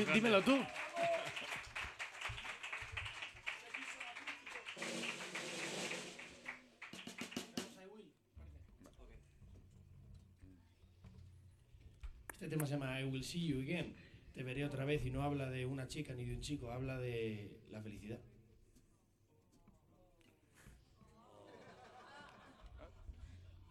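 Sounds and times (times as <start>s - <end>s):
speech: 0.0s - 0.8s, 12.5s - 18.3s
audience applause: 0.0s - 7.8s
laughter: 21.0s - 23.6s.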